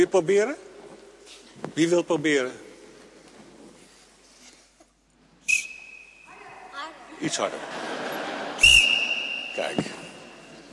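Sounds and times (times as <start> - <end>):
speech: 0.0 - 0.7, 1.3 - 2.7, 7.2 - 7.8, 9.6 - 10.0
small whistle being blown: 5.4 - 6.3, 8.6 - 10.3
laughter: 7.2 - 10.4.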